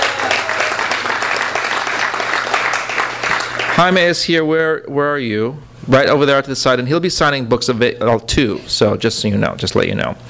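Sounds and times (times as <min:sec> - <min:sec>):
audience applause: 0:00.0 - 0:03.9
speech: 0:03.8 - 0:10.2.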